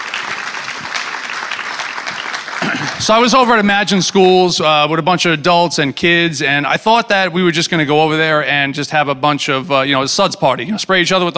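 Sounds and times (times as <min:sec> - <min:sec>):
audience applauding: 0:00.0 - 0:04.4
speech: 0:03.0 - 0:11.3.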